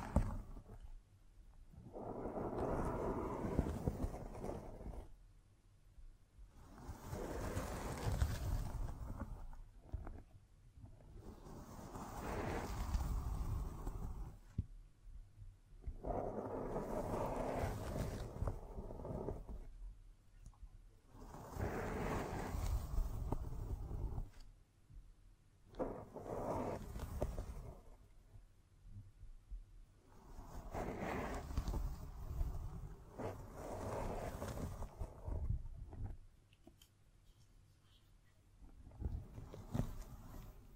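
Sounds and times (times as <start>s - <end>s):
scratching and tracing strokes: 1.8s - 5.2s, 6.5s - 10.4s, 11.0s - 14.6s, 15.8s - 19.7s, 21.1s - 24.5s, 25.7s - 28.1s, 30.1s - 36.2s, 36.8s - 40.7s.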